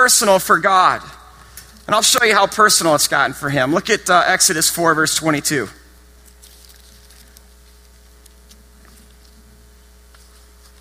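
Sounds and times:
speech: 0.0 - 1.2, 1.9 - 5.8
Bible pages turning: 6.2 - 10.7.

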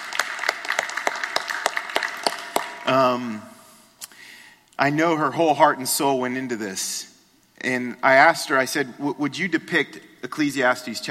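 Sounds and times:
audience applause: 0.0 - 3.1
speech: 2.9 - 3.5, 4.8 - 11.0.

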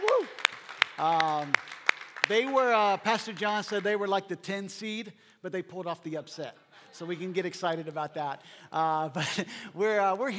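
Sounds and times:
audience clapping: 0.0 - 4.1
speech: 1.0 - 10.3.

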